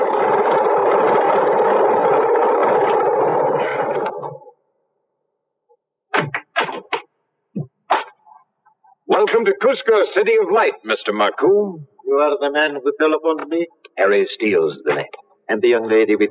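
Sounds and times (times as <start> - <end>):
single-engine plane taxiing up the strip: 0.0 - 4.4
speech: 9.4 - 16.3.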